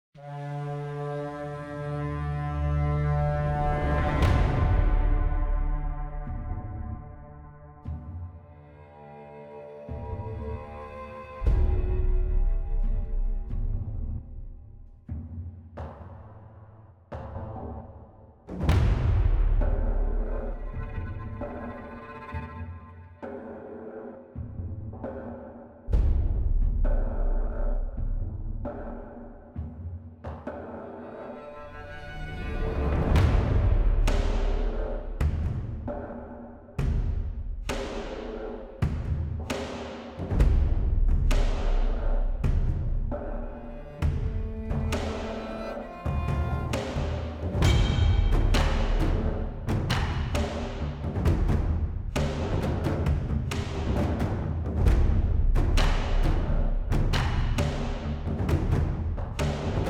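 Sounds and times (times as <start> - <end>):
music: 0.2 - 59.8.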